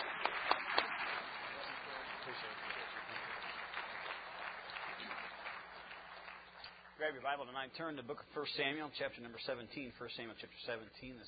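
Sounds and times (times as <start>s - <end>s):
church congregation applauding to welcome a visiting preacher: 0.0s - 7.1s
speech: 2.4s - 2.6s, 7.0s - 11.2s.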